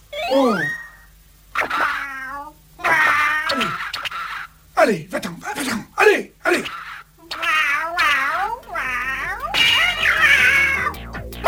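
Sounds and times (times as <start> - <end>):
speech: 0.3 - 0.8, 4.8 - 5.3
cat yowling: 1.7 - 3.8, 7.2 - 11.4.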